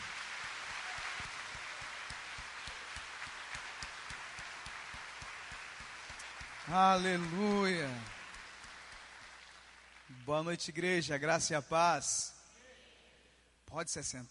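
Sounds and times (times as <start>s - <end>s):
crowd applauding: 0.0s - 10.4s
speech: 6.7s - 8.2s, 10.3s - 12.4s, 13.7s - 14.2s.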